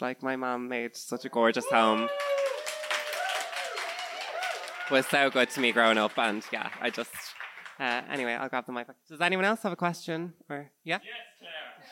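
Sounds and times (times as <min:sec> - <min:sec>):
speech: 0:00.0 - 0:02.4, 0:04.9 - 0:11.9
audience clapping: 0:01.6 - 0:08.6.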